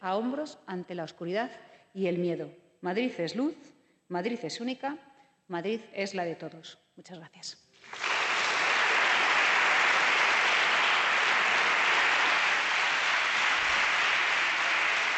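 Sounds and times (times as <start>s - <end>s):
speech: 0.0s - 8.1s
ovation applause in parliament: 7.8s - 15.1s.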